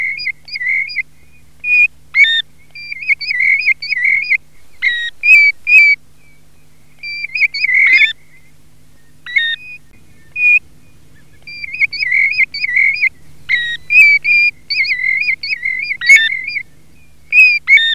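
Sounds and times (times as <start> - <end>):
European golden plover wavering whistles: 0.0 - 17.9.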